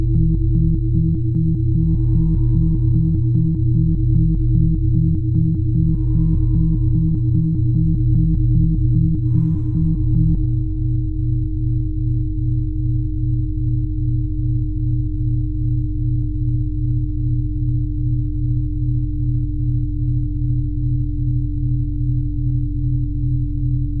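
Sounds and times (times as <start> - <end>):
fast throbbing pulse: 0.0 - 11.6
binaural tones low hum: 0.0 - 23.9.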